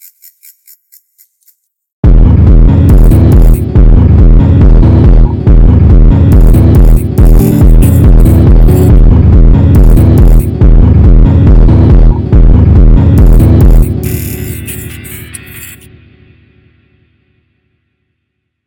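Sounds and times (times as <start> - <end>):
bass-boosted funk: 2.0 - 15.9.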